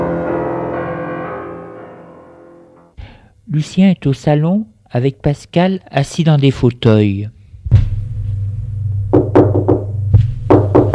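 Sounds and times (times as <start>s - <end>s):
low steady hum: 3.1s - 10.9s
speech: 3.5s - 7.4s
knocking on a door: 9.1s - 10.9s.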